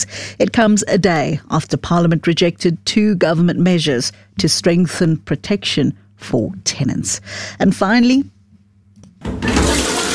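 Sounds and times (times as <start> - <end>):
speech: 0.0 - 8.4
toilet flushing: 9.2 - 10.1.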